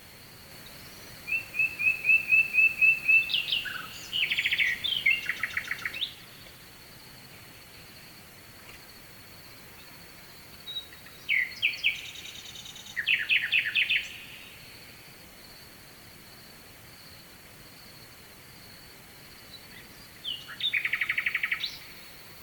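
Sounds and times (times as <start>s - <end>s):
nightingale singing: 0.6s - 6.5s, 10.6s - 14.8s, 19.5s - 22.1s.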